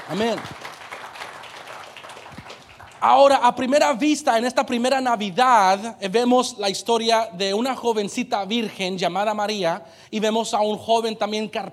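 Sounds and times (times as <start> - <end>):
audience applause: 0.0 - 3.3
speech: 0.1 - 0.6, 3.0 - 11.7.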